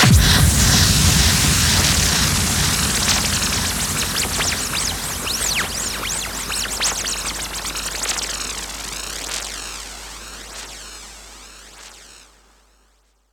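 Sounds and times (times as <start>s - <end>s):
hall kick drum: 0.0s - 7.3s.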